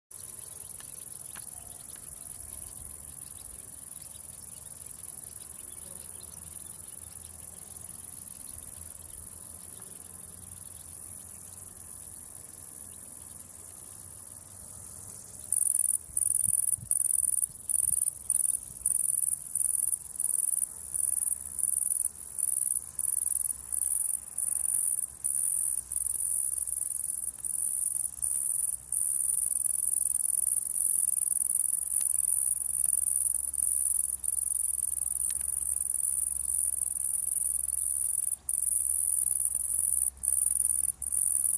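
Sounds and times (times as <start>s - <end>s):
meadow ambience: 0.1s - 41.5s.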